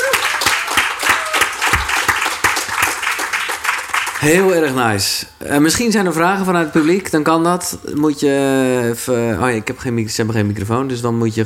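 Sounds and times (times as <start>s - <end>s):
audience applause: 0.0s - 4.7s
speech: 4.2s - 11.4s.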